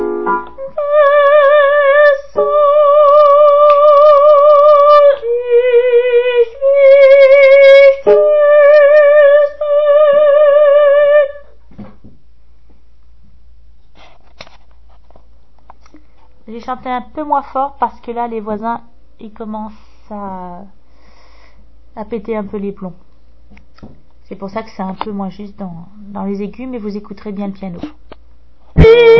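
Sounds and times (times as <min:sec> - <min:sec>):
soprano singing a requiem: 0:00.0 - 0:11.5, 0:28.8 - 0:29.1.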